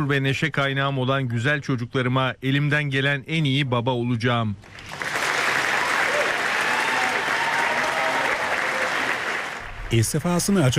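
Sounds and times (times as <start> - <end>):
speech: 0.0 - 5.0, 9.9 - 10.7
crowd applause for British Prime Minister Keir Starmer: 4.7 - 10.0.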